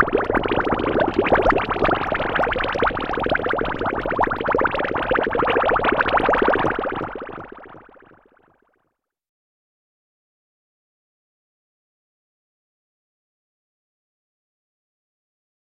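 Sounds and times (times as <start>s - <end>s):
water bubbles: 0.0s - 8.4s.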